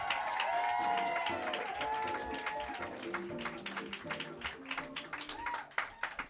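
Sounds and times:
audience cheering: 0:00.0 - 0:04.0, 0:05.0 - 0:06.2
audience clapping: 0:00.0 - 0:06.2.

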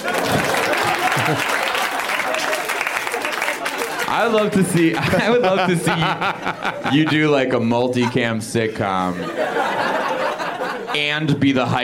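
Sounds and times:
clapping: 0:00.0 - 0:05.2
laughter: 0:00.0 - 0:11.7
speech: 0:01.3 - 0:01.6, 0:04.1 - 0:10.0, 0:10.9 - 0:11.8.

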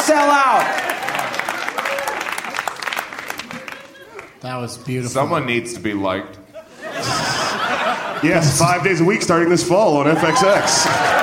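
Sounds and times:
crowd clapping and cheering: 0:00.0 - 0:04.4, 0:10.4 - 0:11.2
speech: 0:00.1 - 0:00.8, 0:04.4 - 0:06.4, 0:08.2 - 0:11.2
laughter: 0:02.4 - 0:05.3, 0:06.5 - 0:11.2.

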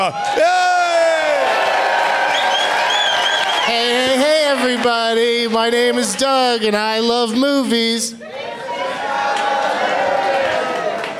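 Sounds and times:
speech: 0:00.0 - 0:00.6, 0:03.7 - 0:08.4
crowd cheering with whoops and shouts: 0:00.0 - 0:11.1
applause: 0:01.1 - 0:06.8, 0:09.2 - 0:11.1.

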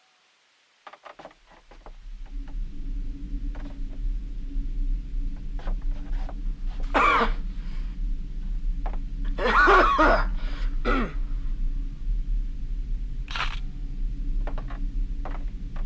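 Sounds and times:
faint ticks and clicks: 0:00.8 - 0:09.4, 0:11.9 - 0:15.8
low rumble: 0:01.3 - 0:15.8
harsh coughs: 0:06.9 - 0:07.4, 0:09.4 - 0:11.2.

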